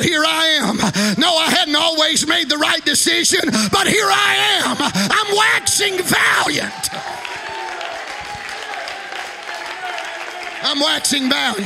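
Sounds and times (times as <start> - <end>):
speech: 0.0 - 7.4, 10.6 - 11.6
audience clapping hands: 6.8 - 11.6.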